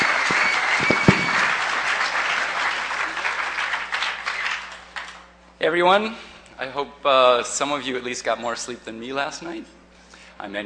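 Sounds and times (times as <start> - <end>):
audience applause: 0.0 - 5.2
speech: 5.6 - 9.8, 10.4 - 10.6.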